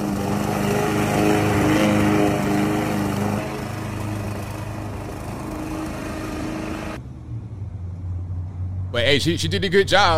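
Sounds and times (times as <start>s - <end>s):
gas push mower engine droning while cutting grass: 0.0s - 7.0s
speech: 9.1s - 10.1s.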